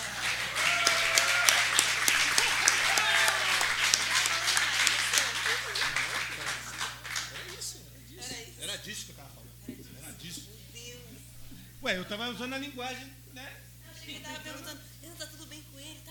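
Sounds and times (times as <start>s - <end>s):
audience applause: 0.0s - 7.8s
laughter: 0.0s - 11.3s, 13.9s - 14.9s
speech: 11.9s - 13.5s.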